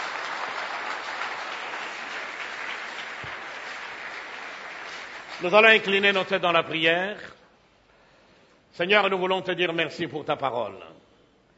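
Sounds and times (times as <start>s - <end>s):
church congregation applauding: 0.0s - 6.5s
speech: 5.4s - 7.4s, 8.8s - 11.1s.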